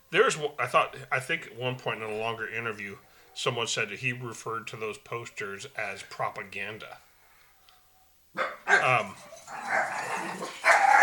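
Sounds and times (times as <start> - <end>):
speech: 0.1 - 7.1, 8.4 - 9.8
dog barking: 7.9 - 11.0.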